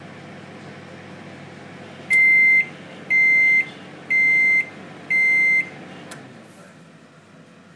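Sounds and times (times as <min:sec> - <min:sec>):
microwave: 0:00.0 - 0:07.7.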